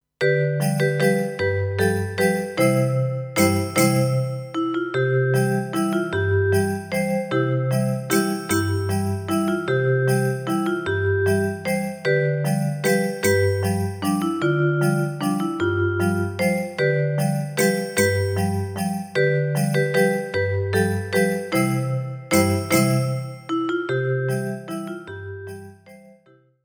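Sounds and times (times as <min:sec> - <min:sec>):
waltz music: 0:00.4 - 0:26.2.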